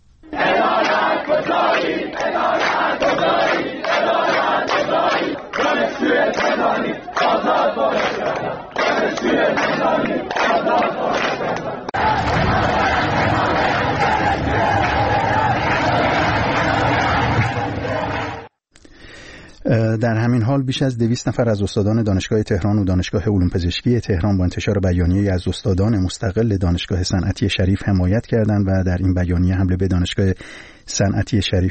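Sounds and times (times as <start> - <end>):
students chanting political slogans at Shahid Rajaee Teacher Training University in Tehran: 0.2 - 18.5
speech: 20.0 - 31.6.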